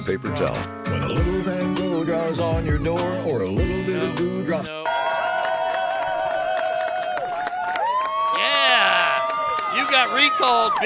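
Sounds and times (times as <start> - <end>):
speech: 0.0 - 5.0, 9.9 - 10.8
crowd cheering: 4.7 - 10.8.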